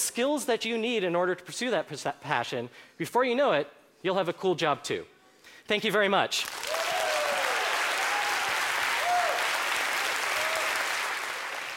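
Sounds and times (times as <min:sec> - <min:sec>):
speech: 0:00.2 - 0:06.7
audience applause: 0:06.4 - 0:11.7
faint whistles and cheers: 0:06.6 - 0:11.7.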